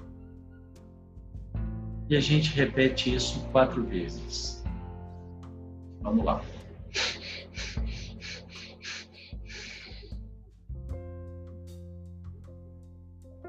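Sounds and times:
soft steady musical drone: 2.0s - 10.3s
speech: 2.1s - 4.6s, 6.0s - 7.1s
nasal breathing exercise with short sniffing inhalations and one long breath: 6.5s - 10.3s.

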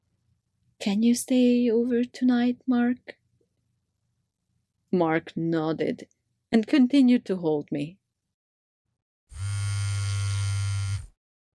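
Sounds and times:
speech: 0.8s - 3.2s, 4.9s - 8.0s
mobile phone vibrating: 9.3s - 11.2s.

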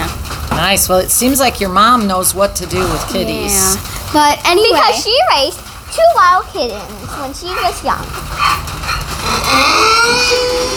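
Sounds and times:
speech: 0.6s - 8.5s, 9.5s - 10.7s
donkeys braying: 4.6s - 10.7s.

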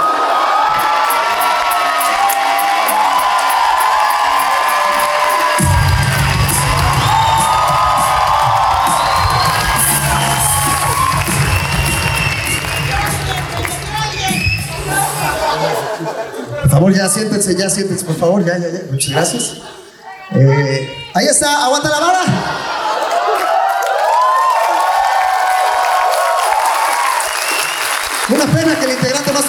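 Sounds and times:
whoops and shouts: 0.0s - 12.6s, 23.2s - 27.7s
large crowd clapping and cheering: 0.0s - 15.9s, 22.6s - 29.4s
low rumble: 5.6s - 9.5s
laughter: 14.6s - 17.0s, 22.2s - 23.6s
speech: 16.8s - 22.8s.

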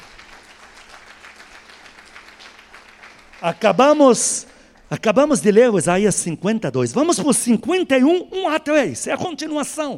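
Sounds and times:
audience applauding: 0.0s - 4.9s
speech: 3.4s - 9.9s.

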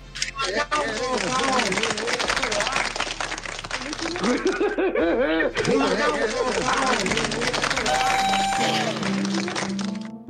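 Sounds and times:
laughter: 0.4s - 9.8s
speech: 0.5s - 1.3s, 4.2s - 9.2s
crowd applauding: 0.5s - 10.2s.

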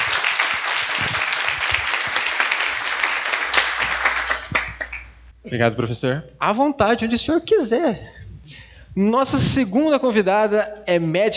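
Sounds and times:
audience clapping: 0.0s - 5.2s
speech: 5.5s - 11.3s.

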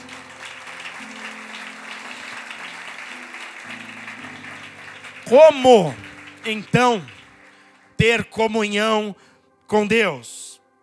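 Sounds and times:
audience applause: 0.0s - 8.0s
speech: 5.3s - 7.2s, 8.0s - 10.4s.

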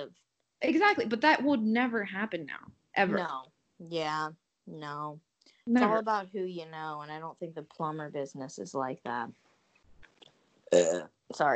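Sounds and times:
speech: 0.0s - 9.4s, 10.7s - 11.5s
person burping: 10.7s - 11.0s.

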